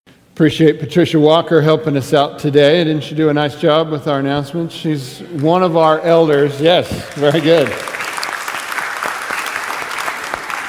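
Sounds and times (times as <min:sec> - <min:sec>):
speech: 0:00.4 - 0:08.0
audience applause: 0:05.4 - 0:10.6.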